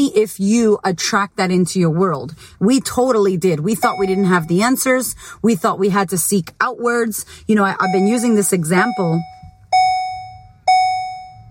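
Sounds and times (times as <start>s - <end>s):
speech: 0.0s - 9.4s
car warning chime dinging: 3.7s - 4.9s, 7.7s - 11.4s.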